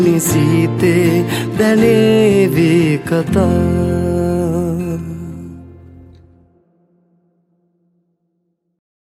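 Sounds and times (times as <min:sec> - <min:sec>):
person singing: 0:00.0 - 0:06.0
guitar: 0:00.0 - 0:08.2.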